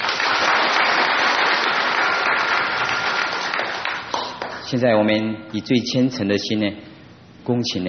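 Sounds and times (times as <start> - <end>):
audience applause: 0.0 - 4.6
speech: 4.7 - 7.8.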